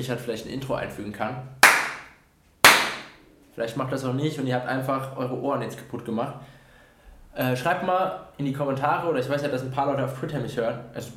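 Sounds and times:
speech: 0.0 - 1.6, 3.6 - 6.6, 7.4 - 11.1
hand claps: 1.6 - 3.2.

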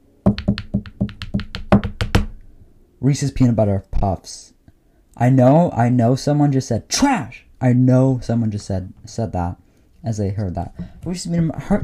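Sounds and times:
drum roll tapped by hands: 0.2 - 2.3
speech: 3.0 - 4.6, 5.2 - 11.8.

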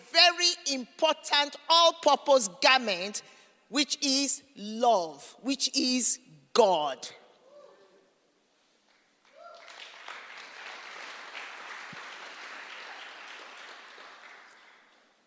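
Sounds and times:
speech: 0.7 - 7.2
audience applause: 9.2 - 15.2.

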